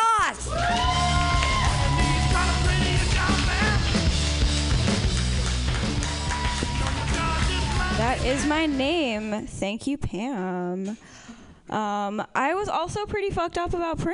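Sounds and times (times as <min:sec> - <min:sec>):
audience clapping: 0:00.5 - 0:09.4
speech: 0:08.2 - 0:14.1.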